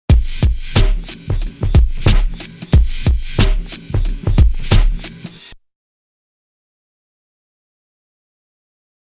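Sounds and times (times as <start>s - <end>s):
drum loop: 0.0s - 5.6s.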